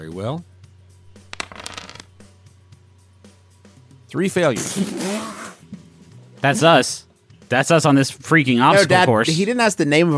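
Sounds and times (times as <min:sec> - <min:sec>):
speech: 0:00.0 - 0:00.5, 0:04.1 - 0:05.4, 0:06.4 - 0:10.1
three eight-sided dice rolled for a tabletop game: 0:01.2 - 0:02.2.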